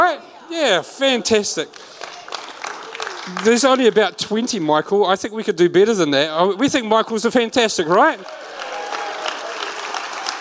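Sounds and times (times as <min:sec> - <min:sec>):
speech: 0:00.1 - 0:02.0, 0:03.3 - 0:08.5
audience clapping: 0:01.6 - 0:04.6, 0:07.8 - 0:10.3.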